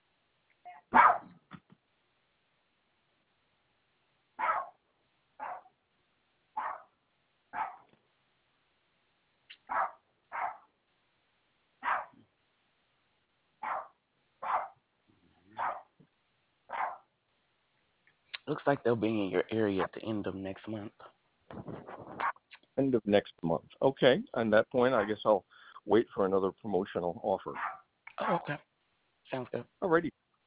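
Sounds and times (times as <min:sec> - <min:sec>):
dog barking: 0:00.9 - 0:01.4, 0:04.4 - 0:04.8, 0:05.4 - 0:05.7, 0:06.6 - 0:06.9, 0:07.5 - 0:07.9, 0:09.6 - 0:10.7, 0:11.8 - 0:12.2, 0:13.6 - 0:14.8, 0:15.5 - 0:16.0, 0:16.7 - 0:17.1, 0:27.6 - 0:27.9
speech: 0:18.5 - 0:21.7, 0:22.8 - 0:28.7, 0:29.3 - 0:30.2.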